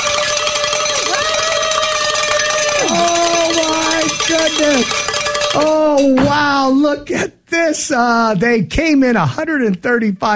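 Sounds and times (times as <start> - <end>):
bright metallic bells ringing in celebration: 0.0 - 6.3
speech: 4.3 - 10.3.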